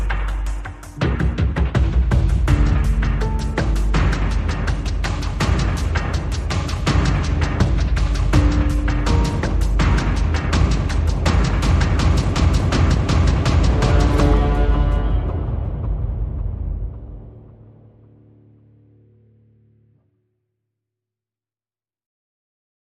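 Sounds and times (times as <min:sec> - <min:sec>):
drums: 0:00.0 - 0:17.6
piano: 0:00.0 - 0:19.0.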